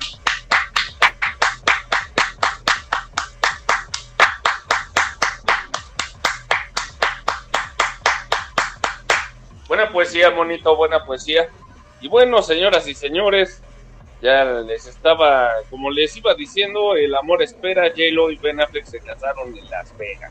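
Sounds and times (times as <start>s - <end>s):
applause: 0.3s - 9.3s
speech: 9.8s - 13.6s, 14.2s - 20.3s.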